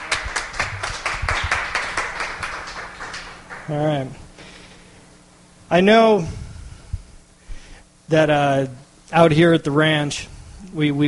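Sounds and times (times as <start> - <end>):
crowd clapping: 0.0 - 4.1
speech: 3.7 - 4.2, 5.7 - 6.4, 8.1 - 11.0.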